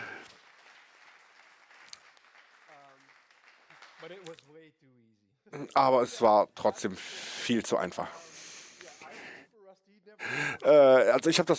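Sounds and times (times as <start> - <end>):
audience applause: 0.0 - 4.4
speech: 4.0 - 11.5.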